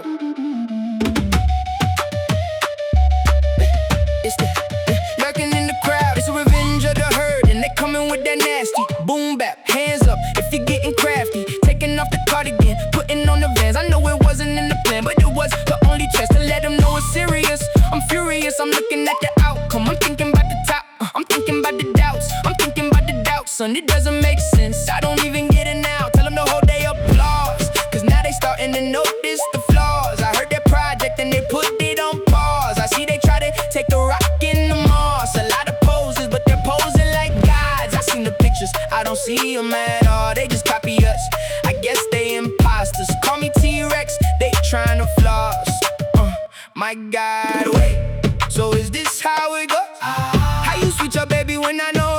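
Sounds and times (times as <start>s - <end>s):
tribal remix music: 0.4s - 9.1s, 9.8s - 46.5s, 47.6s - 52.1s.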